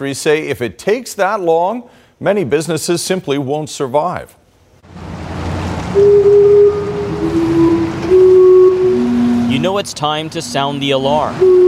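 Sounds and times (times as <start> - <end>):
speech: 0.0 - 5.0, 6.0 - 6.5, 9.6 - 11.6
Gastown steam clock whistling: 6.0 - 11.6.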